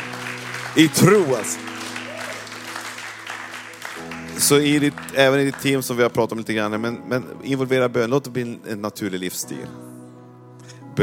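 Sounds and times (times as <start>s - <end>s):
audience applause: 0.0s - 5.9s
speech: 0.8s - 1.7s, 4.4s - 9.9s.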